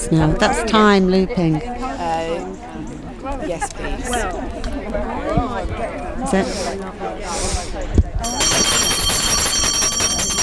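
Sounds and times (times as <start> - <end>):
speech: 0.0 - 8.8
voices murmuring: 0.0 - 10.4
bright high-pitched bell ringing: 8.2 - 10.4.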